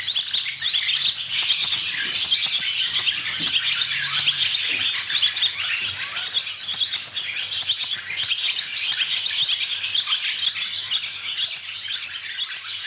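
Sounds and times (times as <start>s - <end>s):
many swallows twittering in a stable: 0.0s - 12.8s.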